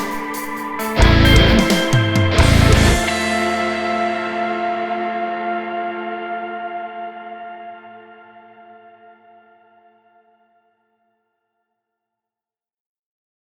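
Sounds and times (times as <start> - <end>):
instrumental music: 0.0 - 6.4.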